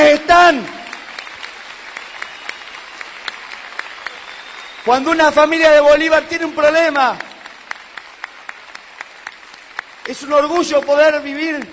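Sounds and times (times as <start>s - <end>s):
audience applause: 0.0s - 11.7s
speech: 0.5s - 0.8s, 4.9s - 7.3s, 10.1s - 11.7s.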